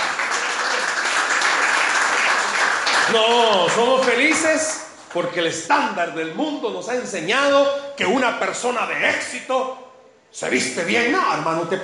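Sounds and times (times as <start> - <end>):
audience applause: 0.0 - 4.5
speech: 3.1 - 11.8.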